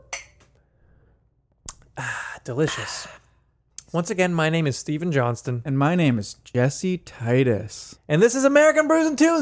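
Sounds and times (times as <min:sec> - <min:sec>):
glasses clinking in a toast: 0:00.1 - 0:00.4
speech: 0:02.5 - 0:03.2, 0:03.9 - 0:09.3.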